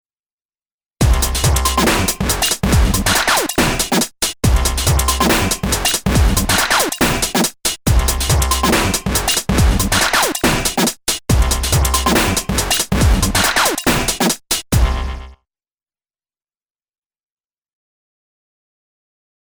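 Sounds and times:
Zoom AR 48 dubstep beat: 0:01.0 - 0:15.3.

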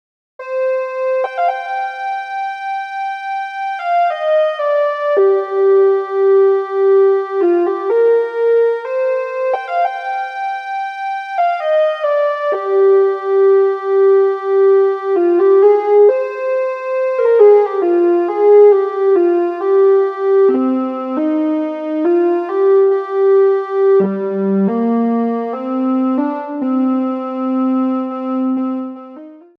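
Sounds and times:
pulse lead synth: 0:00.4 - 0:29.5.

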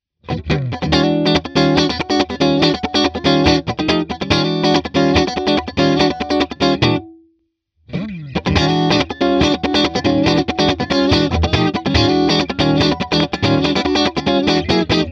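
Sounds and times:
funk chords: 0:00.3 - 0:07.2, 0:07.9 - 0:15.1.

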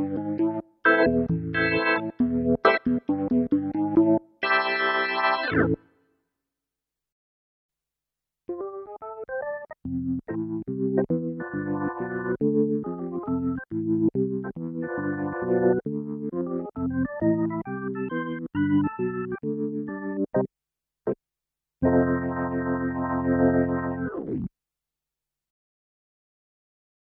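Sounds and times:
organ: 0:00.0 - 0:05.8, 0:08.5 - 0:20.5, 0:21.8 - 0:24.5.

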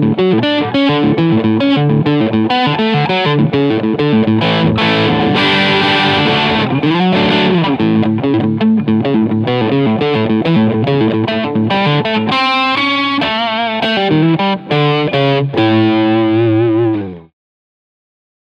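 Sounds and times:
FGN Neo Classic LC20 guitar crunch sound on bridge humbucker: 0:00.0 - 0:17.3.

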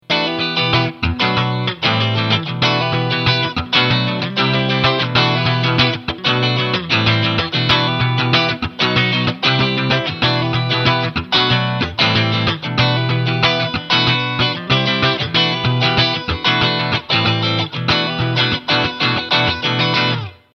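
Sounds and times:
funk lick: 0:00.1 - 0:20.4.

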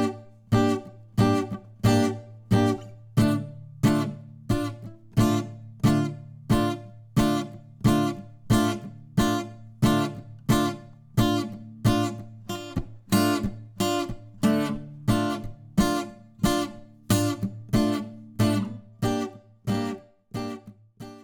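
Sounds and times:
acoustic guitar note attack and release: 0:00.0 - 0:21.2.

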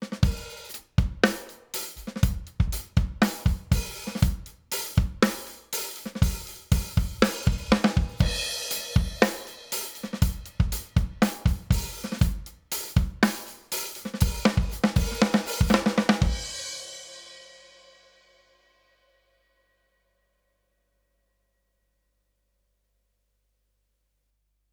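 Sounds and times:
drums: 0:00.0 - 0:18.6.

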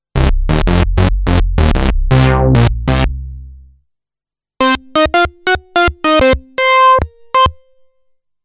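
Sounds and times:
funky trance lead synth: 0:00.2 - 0:03.4, 0:04.6 - 0:07.8.

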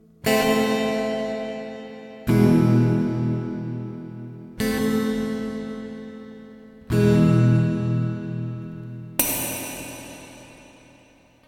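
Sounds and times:
Les Paul electric guitar: 0:00.2 - 0:06.2, 0:06.8 - 0:09.1.

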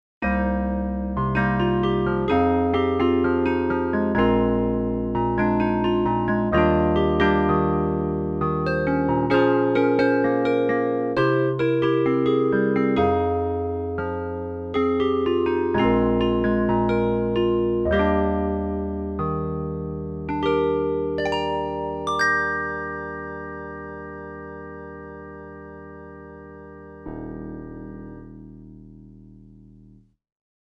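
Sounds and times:
Roland MKS-10 Planet-P electric piano with chorus: 0:00.2 - 0:28.6.

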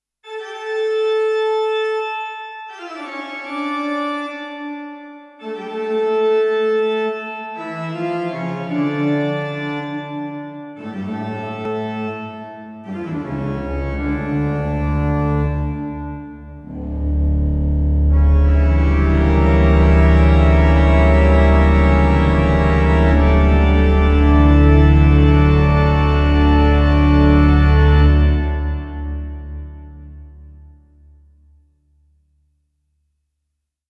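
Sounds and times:
Westminster Abbey pipe organ: 0:00.6 - 0:31.1.

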